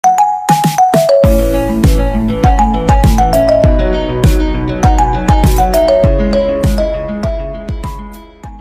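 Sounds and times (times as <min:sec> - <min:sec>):
music beat: 0:00.0 - 0:08.5.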